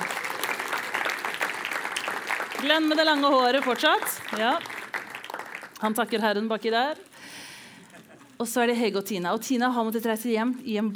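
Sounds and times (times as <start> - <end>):
crowd clapping: 0.0 - 6.2
speech: 2.6 - 4.7, 5.8 - 7.1, 8.4 - 10.9.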